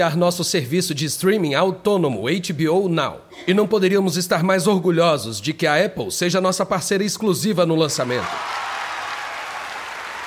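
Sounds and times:
speech: 0.0 - 8.7
audience applauding frantically: 8.0 - 10.2.

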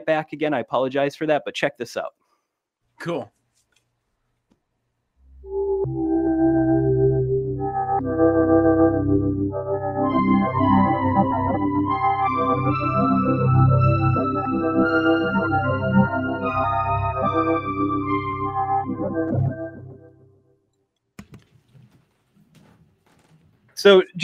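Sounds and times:
speech: 0.0 - 2.2, 3.0 - 3.4, 23.8 - 24.2
keyboard synth pad holding warm sustained chords: 5.2 - 20.4.

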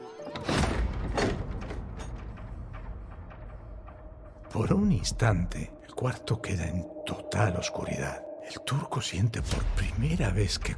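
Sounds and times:
door closing with heavy scraping clunks: 0.3 - 4.1
speech: 4.6 - 10.7.

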